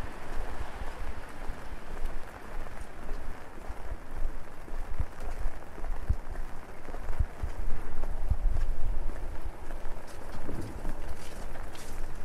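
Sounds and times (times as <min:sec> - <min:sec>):
low rumbling downtown traffic at night: 0:00.0 - 0:12.2
rain pattering on an umbrella: 0:00.0 - 0:12.2
footsteps: 0:07.3 - 0:12.2.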